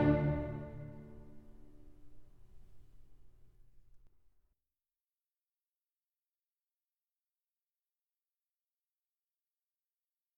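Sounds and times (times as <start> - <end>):
string orchestra: 0.0 - 2.2
two violins in a concerto: 0.0 - 2.4.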